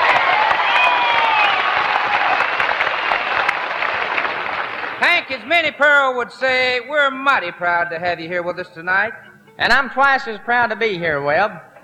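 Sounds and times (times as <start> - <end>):
audience applause welcoming a singer on stage: 0.0 - 5.4
speech: 5.3 - 11.7.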